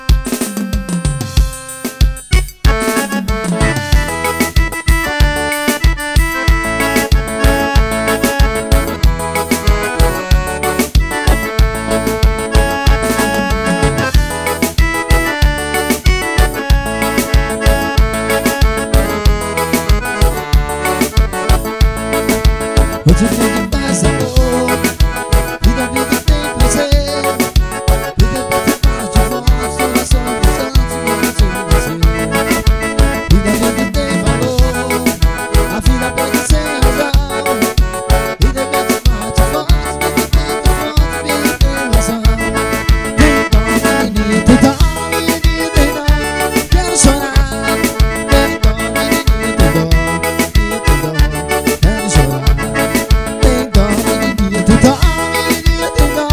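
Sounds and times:
forró music: 0.0 - 56.3.

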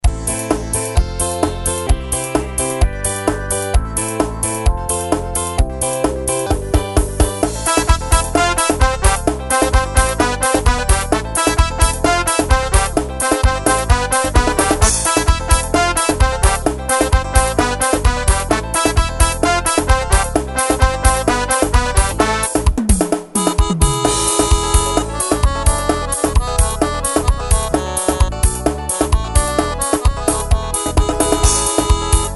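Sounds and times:
Yamaha forró rhythm: 0.0 - 32.3.

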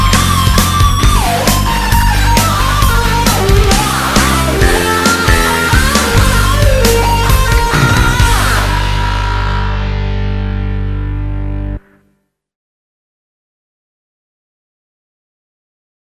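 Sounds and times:
guitar improvising: 0.0 - 12.1.

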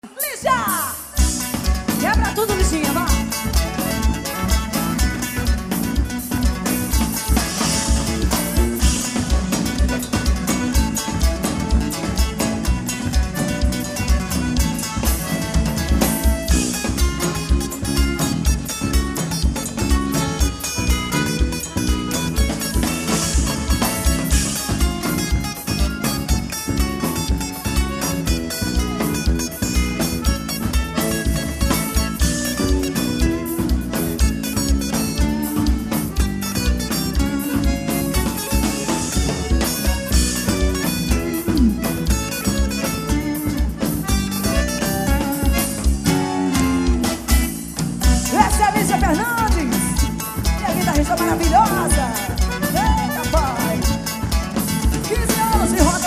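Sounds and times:
instrumental guitar music: 0.2 - 56.0.

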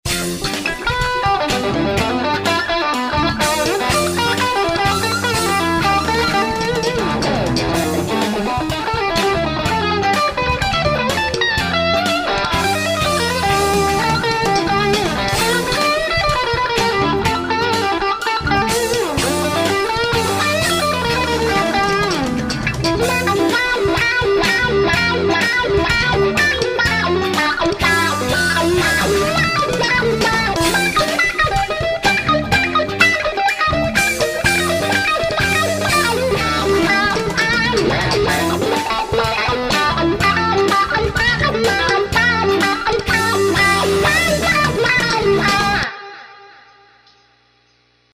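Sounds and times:
improvised funk: 0.1 - 45.9.

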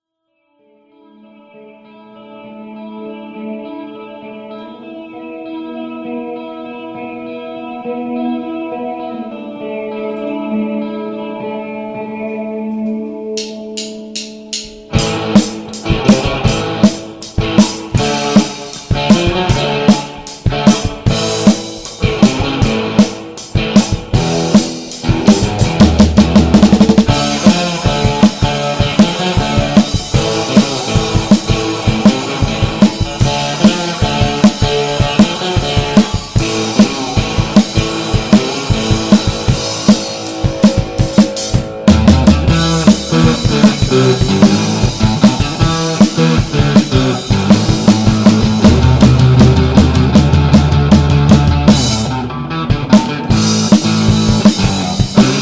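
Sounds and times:
instrumental music: 0.3 - 55.4.

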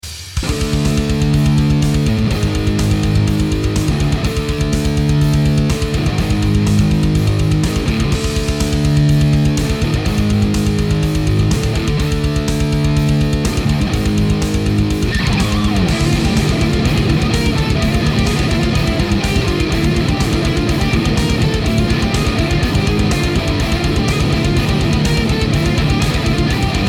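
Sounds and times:
intro instrumental music: 0.4 - 26.8.

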